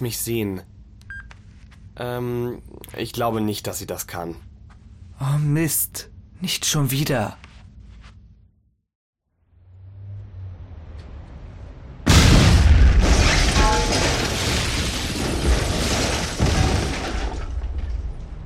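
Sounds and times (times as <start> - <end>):
speech: 0.0 - 0.7, 2.0 - 4.5, 5.2 - 7.5
office building facade exploding: 11.9 - 18.4.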